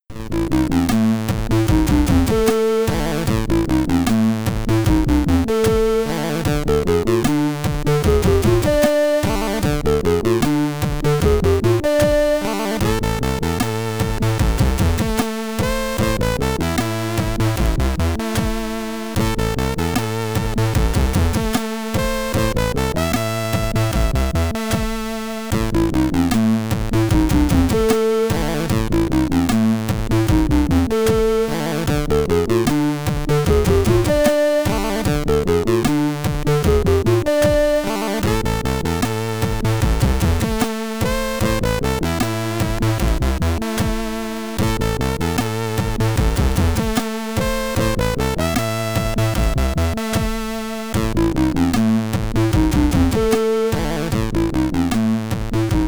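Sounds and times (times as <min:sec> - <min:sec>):
stereo SID chip boss battle game music: 0:00.2 - 0:55.8.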